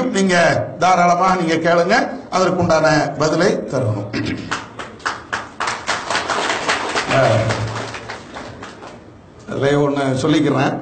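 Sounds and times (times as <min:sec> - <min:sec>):
speech: 0:00.2 - 0:04.6, 0:07.1 - 0:07.6, 0:09.5 - 0:10.7
audience clapping: 0:04.5 - 0:09.2.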